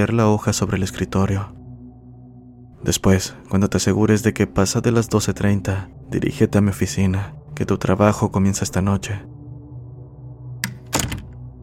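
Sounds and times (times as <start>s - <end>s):
speech: 0.0s - 1.6s, 2.8s - 9.4s
steady low hum: 0.0s - 11.6s
door shutting: 10.6s - 11.4s.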